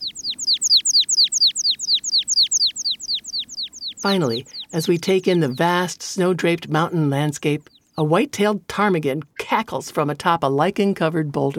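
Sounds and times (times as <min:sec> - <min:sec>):
American pipit song of repeated sharp descending notes: 0:00.0 - 0:05.8
speech: 0:04.0 - 0:11.5.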